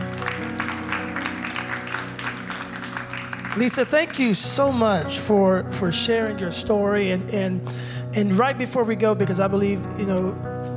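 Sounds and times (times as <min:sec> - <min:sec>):
audience applause: 0:00.0 - 0:04.5
speech: 0:03.6 - 0:10.5.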